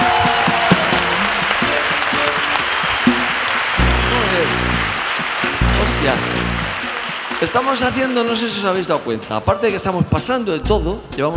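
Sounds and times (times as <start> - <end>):
audience applause: 0.0 - 8.5
speech: 6.0 - 6.4, 7.4 - 11.3.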